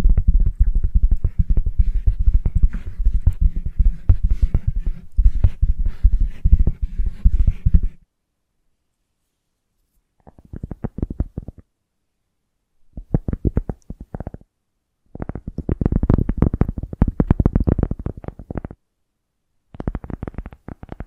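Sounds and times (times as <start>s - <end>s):
invisible tapping, scratching and tracing: 0.0s - 8.0s, 10.2s - 11.6s, 13.0s - 14.4s, 15.2s - 18.8s, 19.7s - 21.0s.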